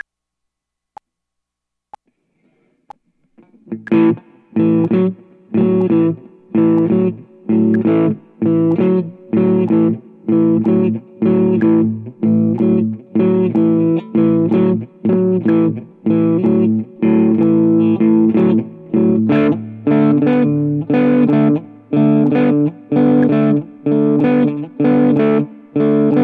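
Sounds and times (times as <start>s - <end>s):
blues music in A: 3.4s - 26.2s.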